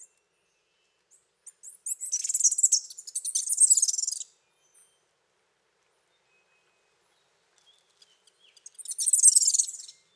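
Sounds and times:
birds of the Costa Rican cloud forest chirping and whistling: 0:01.6 - 0:04.2, 0:08.6 - 0:10.0.

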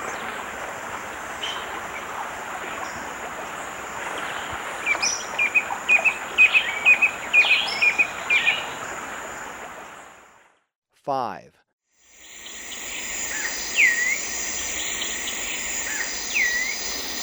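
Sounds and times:
Stripe-chested Antwren in Ecuador: 0:04.8 - 0:08.8, 0:12.1 - 0:17.2.

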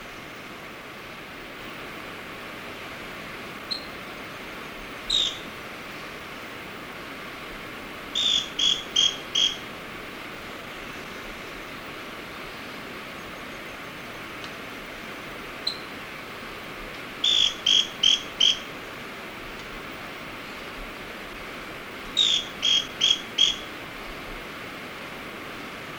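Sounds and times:
steady insect hiss: 0:00.0 - 0:25.9
scale-crested pygmy-tyrant giving sharp buzzy notes: 0:05.1 - 0:05.5, 0:08.1 - 0:09.8, 0:17.2 - 0:18.8, 0:22.2 - 0:23.8.

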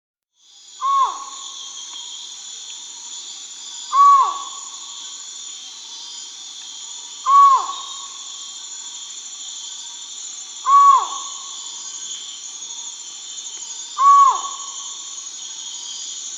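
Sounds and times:
Collared forest-falcon Micrastur semitorquatus calls in the Amazon, Peru: 0:00.8 - 0:01.4, 0:03.9 - 0:04.7, 0:07.2 - 0:08.1, 0:10.6 - 0:11.5, 0:14.0 - 0:14.7.

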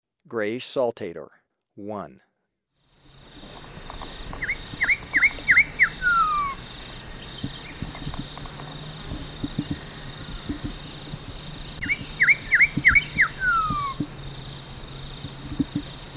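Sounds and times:
Grayish Saltator song in Ecuador: 0:04.5 - 0:16.1.

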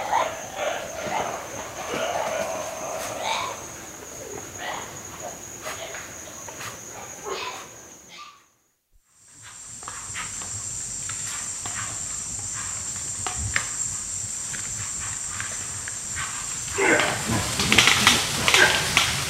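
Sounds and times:
white-lipped peccary grunting in South American rainforest: 0:00.0 - 0:05.0, 0:16.7 - 0:19.1.

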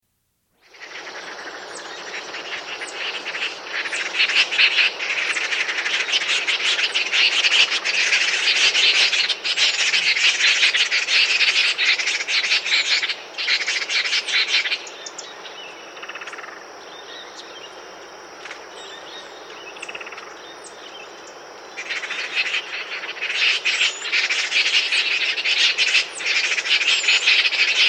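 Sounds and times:
Band-backed wren rasping chatter in South America: 0:00.6 - 0:15.2, 0:21.8 - 0:27.8.

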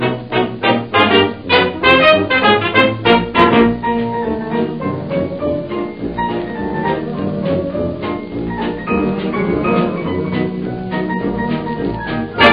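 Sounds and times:
orchestra playing a medley: 0:00.0 - 0:12.5.

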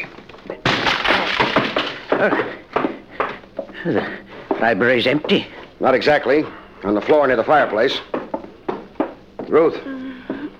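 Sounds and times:
library door being broken in: 0:00.0 - 0:02.3
speech: 0:02.2 - 0:02.6, 0:03.8 - 0:08.1, 0:09.5 - 0:09.9.

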